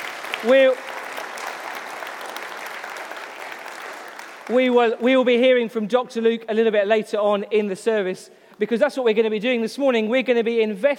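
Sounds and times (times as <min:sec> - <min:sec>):
audience round of applause: 0:00.0 - 0:05.0
speech: 0:00.4 - 0:00.8, 0:04.5 - 0:10.9.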